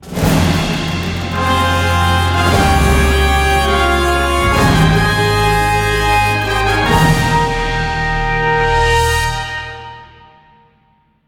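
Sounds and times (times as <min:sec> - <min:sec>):
musical stingers: 0:00.9 - 0:10.6.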